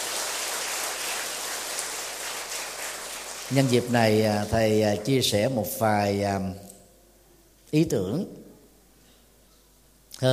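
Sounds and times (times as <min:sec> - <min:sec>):
loud applause: 0:00.0 - 0:05.2
speech: 0:03.5 - 0:06.7, 0:07.7 - 0:08.4, 0:10.2 - 0:10.3.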